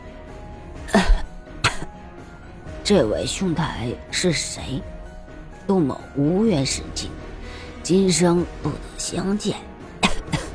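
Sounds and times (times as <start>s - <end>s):
man coughing up blood: 0.9s - 1.9s, 10.0s - 10.5s
speech: 2.9s - 4.9s, 5.7s - 9.7s.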